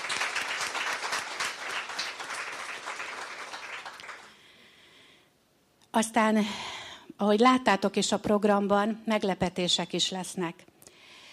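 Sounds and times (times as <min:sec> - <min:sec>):
audience applause: 0:00.0 - 0:04.4
speech: 0:06.0 - 0:10.7.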